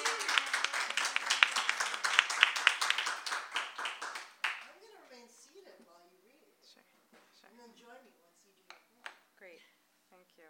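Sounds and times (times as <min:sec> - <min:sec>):
audience round of applause: 0:00.0 - 0:04.7.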